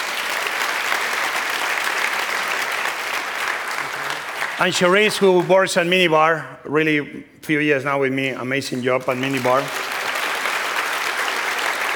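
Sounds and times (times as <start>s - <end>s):
audience applause: 0.0s - 5.9s, 9.1s - 11.9s
speech: 4.6s - 9.8s.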